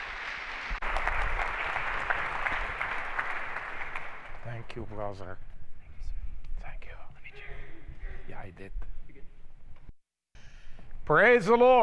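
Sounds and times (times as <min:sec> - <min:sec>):
crowd applauding: 0:00.0 - 0:04.8
speech: 0:04.6 - 0:05.5, 0:08.4 - 0:08.9, 0:11.1 - 0:11.8.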